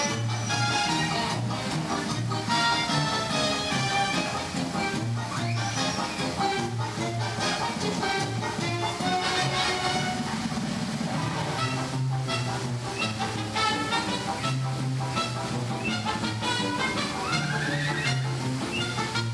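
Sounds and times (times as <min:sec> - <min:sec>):
music-like tones in a theme park: 0:00.0 - 0:19.3
rising whistles: 0:05.3 - 0:06.4, 0:17.2 - 0:19.1.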